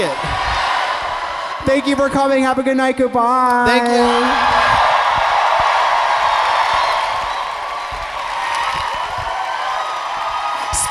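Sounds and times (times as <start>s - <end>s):
speech: 0.0s - 0.4s, 1.6s - 4.6s
audience clapping and cheering: 0.0s - 2.1s, 3.5s - 10.8s.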